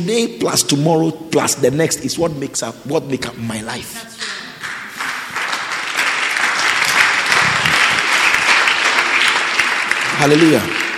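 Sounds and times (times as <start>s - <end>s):
speech: 0.0s - 4.2s, 10.2s - 10.8s
church congregation clapping: 4.1s - 10.9s.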